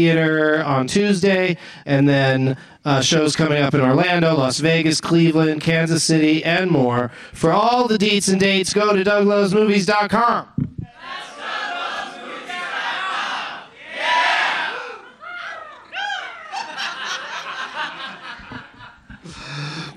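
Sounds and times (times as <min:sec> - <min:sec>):
speech: 0:00.0 - 0:11.2
audience screeching eagle-like cries imitating a bird's caw: 0:11.0 - 0:16.8
scattered laughter: 0:16.4 - 0:19.4.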